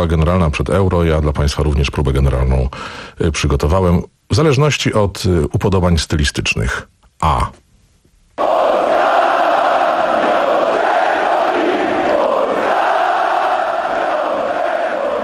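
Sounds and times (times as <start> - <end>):
speech: 0.0 - 7.6
huge football crowd chanting: 8.4 - 15.2.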